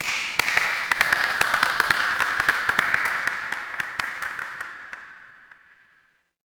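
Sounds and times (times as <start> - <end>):
crowd applause: 0.0 - 5.9.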